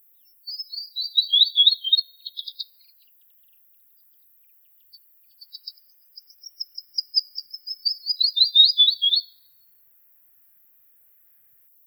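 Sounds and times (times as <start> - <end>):
rufous-fronted fantail calling: 0.5 - 2.7, 5.4 - 9.3.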